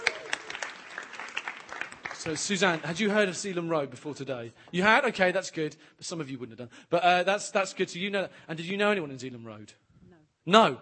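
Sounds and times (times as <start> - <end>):
audience applause: 0.0 - 3.3
speech: 2.2 - 9.8, 10.4 - 10.7.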